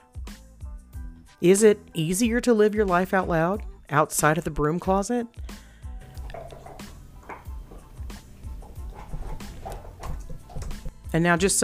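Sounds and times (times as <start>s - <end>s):
speech: 1.4s - 5.6s, 11.2s - 11.6s
dogs gnawing on bones: 6.1s - 11.0s.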